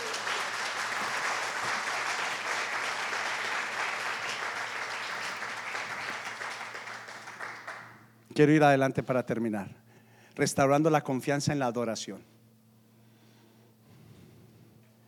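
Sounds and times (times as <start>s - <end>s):
audience applauding: 0.0s - 8.0s
speech: 8.4s - 9.8s, 10.4s - 12.3s.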